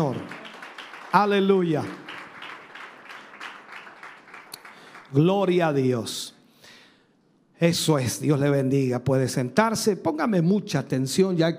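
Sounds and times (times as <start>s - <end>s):
speech: 0.0s - 0.4s, 1.1s - 2.2s, 5.1s - 6.3s, 7.6s - 11.5s
audience applause: 0.0s - 5.3s.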